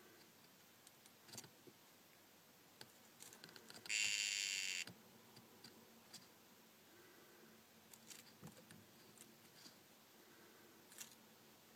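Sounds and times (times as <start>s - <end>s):
dyeing poison frog call: 3.9s - 4.9s.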